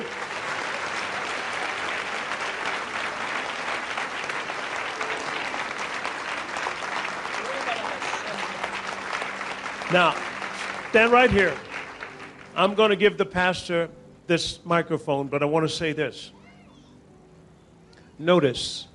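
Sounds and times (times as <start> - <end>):
audience applauding: 0.0 - 13.0
speech: 9.9 - 10.3, 10.9 - 11.7, 12.6 - 16.4, 18.2 - 18.9.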